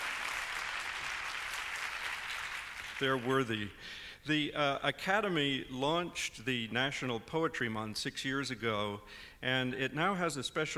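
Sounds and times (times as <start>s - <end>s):
audience applause: 0.0s - 3.4s
speech: 3.0s - 10.7s.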